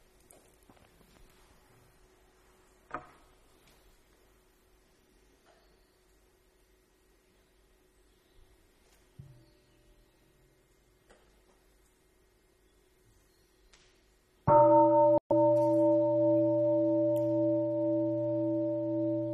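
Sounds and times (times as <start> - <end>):
faint noise: 0.0 - 15.7
meditation bell struck for mindful breathing: 14.5 - 19.3.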